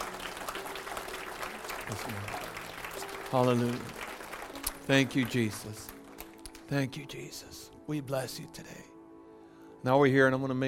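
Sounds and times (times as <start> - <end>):
audience clapping hands: 0.0 - 7.2
speech: 1.9 - 2.4, 3.3 - 4.0, 4.9 - 5.9, 6.7 - 8.9, 9.8 - 10.6.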